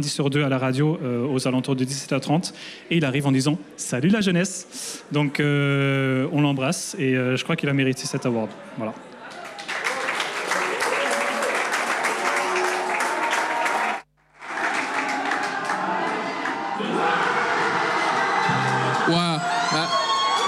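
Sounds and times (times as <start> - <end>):
speech: 0.0 - 9.1
crowd applauding and cheering: 9.2 - 20.4.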